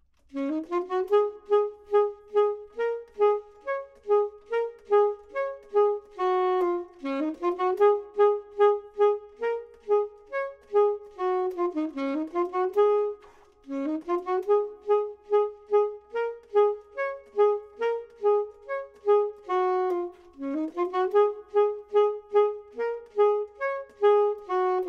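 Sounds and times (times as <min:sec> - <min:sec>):
clarinet: 0:00.3 - 0:24.8
saxophone: 0:00.3 - 0:24.8.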